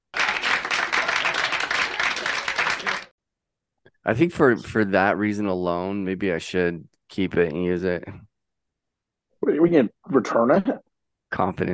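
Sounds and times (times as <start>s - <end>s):
crowd applause sound effect: 0.0s - 3.1s
speech: 4.0s - 8.3s, 9.4s - 11.7s.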